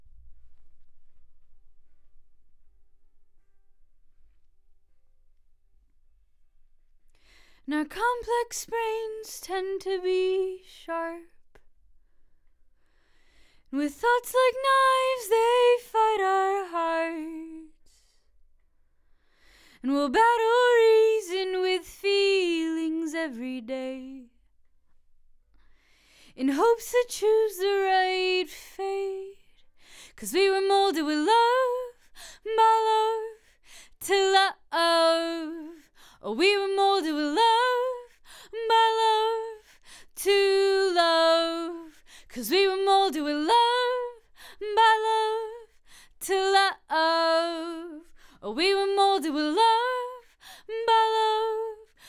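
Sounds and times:
vocals: 7.1 - 11.7, 12.9 - 18.3, 19.2 - 24.6, 25.8 - 52.0.

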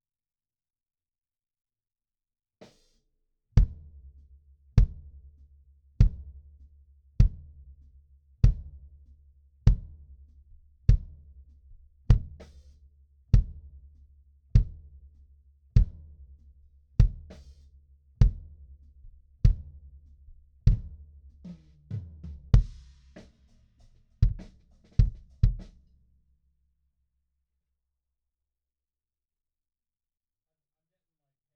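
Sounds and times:
kick drum: 3.6 - 3.9, 4.8 - 5.1, 6.0 - 6.3, 7.2 - 7.6, 8.4 - 8.8, 9.7 - 10.0, 10.8 - 11.2, 12.0 - 12.4, 13.4 - 13.6, 14.6 - 14.9, 15.8 - 16.1, 17.0 - 17.3, 18.2 - 18.6, 19.4 - 19.8, 20.7 - 21.0, 21.9 - 22.8, 24.2 - 25.7.

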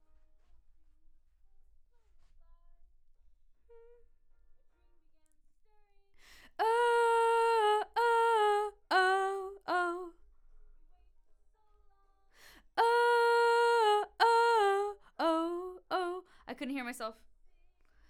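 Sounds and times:
vocal: 6.5 - 10.1, 12.7 - 16.2.

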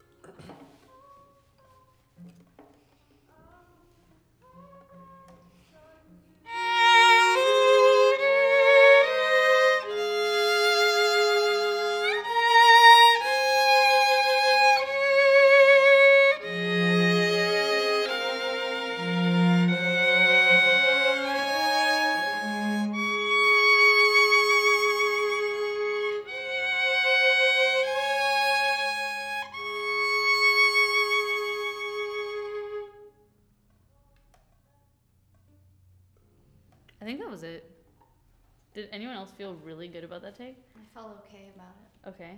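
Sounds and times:
violin: 3.4 - 33.4.

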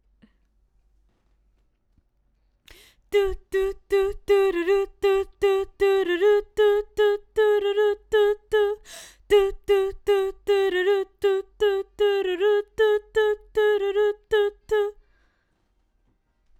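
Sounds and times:
background vocals: 2.7 - 15.1.

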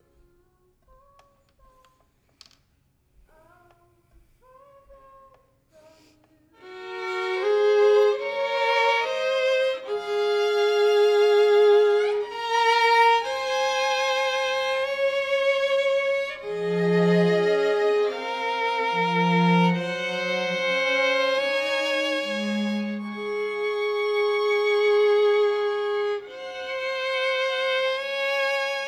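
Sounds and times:
violin: 6.6 - 28.8.

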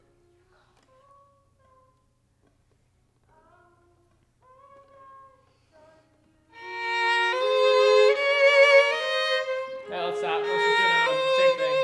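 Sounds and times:
violin: 6.5 - 11.8.

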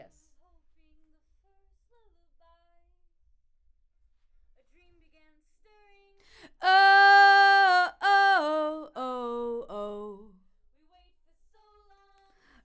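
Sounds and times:
vocal: 6.4 - 10.4.

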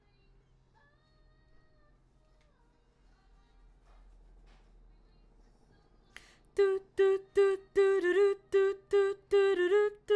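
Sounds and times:
background vocals: 6.5 - 10.1.

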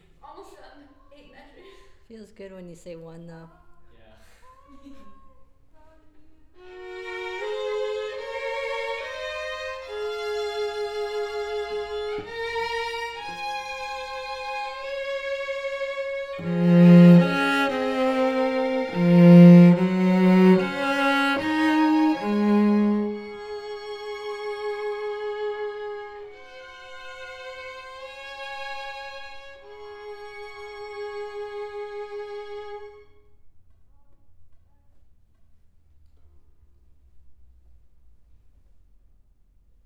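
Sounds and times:
cello: 6.6 - 33.2.

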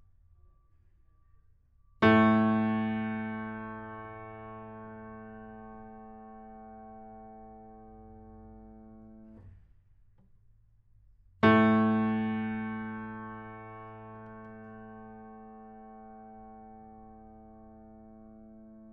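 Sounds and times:
piano: 2.0 - 9.6, 11.4 - 18.9.

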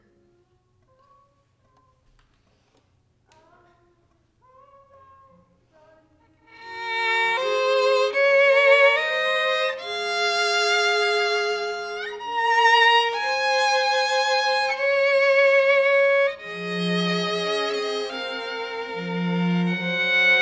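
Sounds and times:
violin: 6.4 - 20.4.

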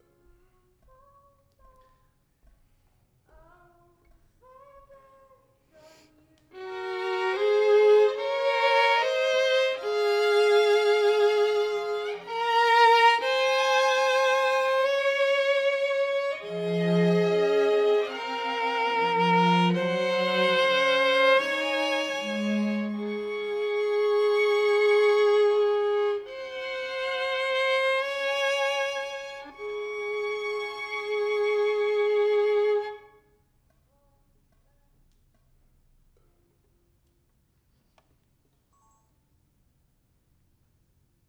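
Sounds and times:
violin: 6.4 - 33.3.

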